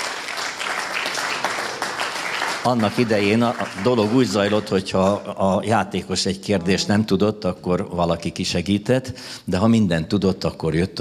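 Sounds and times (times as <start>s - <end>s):
audience applause: 0.0s - 5.4s
speech: 2.6s - 10.9s.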